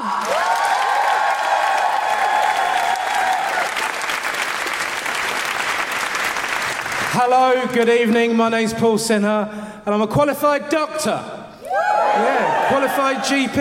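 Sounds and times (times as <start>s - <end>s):
loud crowd whoops and cheers: 0.0s - 3.9s, 11.6s - 13.5s
crowd clapping: 0.0s - 8.4s
speech: 7.2s - 11.4s, 12.1s - 13.5s.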